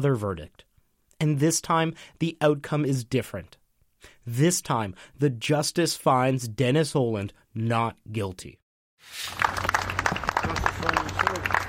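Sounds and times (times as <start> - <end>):
speech: 0.0 - 3.6, 4.2 - 9.7, 10.6 - 11.6
applause outside courtroom: 9.2 - 11.6.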